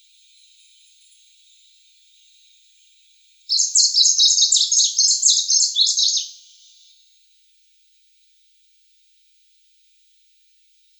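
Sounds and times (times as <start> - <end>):
Tickell's leaf warbler singing: 3.5 - 6.9.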